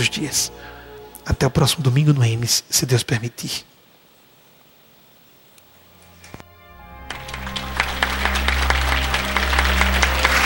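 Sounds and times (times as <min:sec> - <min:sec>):
speech: 0:00.0 - 0:03.7
audience applause: 0:06.8 - 0:10.4.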